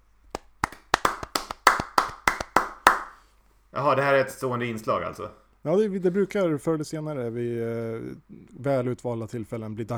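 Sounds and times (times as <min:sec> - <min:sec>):
applause: 0:00.4 - 0:03.2
speech: 0:03.8 - 0:09.9.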